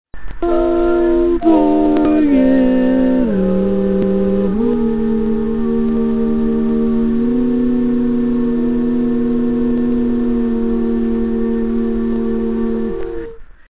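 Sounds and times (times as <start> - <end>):
barbershop baritone singing: 0.4 - 13.3.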